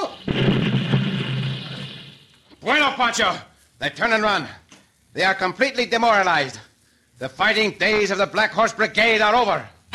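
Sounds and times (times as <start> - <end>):
cannon firing a shot: 0.0 - 2.5
speech: 2.7 - 4.6, 5.2 - 9.8.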